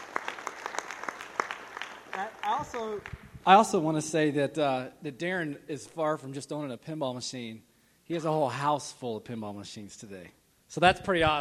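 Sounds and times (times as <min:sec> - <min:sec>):
applause: 0:00.0 - 0:03.2
speech: 0:02.2 - 0:11.4.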